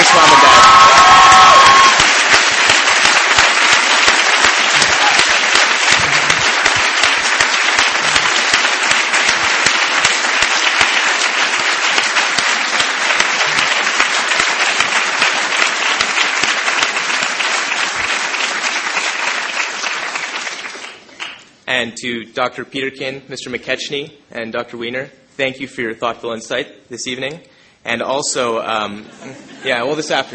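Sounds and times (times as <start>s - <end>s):
graduation audience applause: 0.0s - 21.5s
speech: 21.8s - 30.3s.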